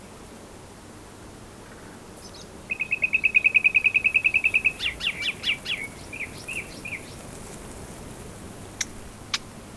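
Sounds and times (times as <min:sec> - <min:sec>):
common nightingale Luscinia megarhynchos song: 0:02.2 - 0:09.7.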